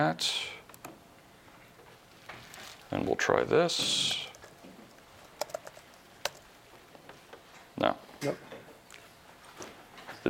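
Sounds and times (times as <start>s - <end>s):
speech: 0.0s - 0.6s, 2.9s - 4.3s, 7.8s - 8.4s
typing on a computer keyboard during a software demo: 4.3s - 6.5s.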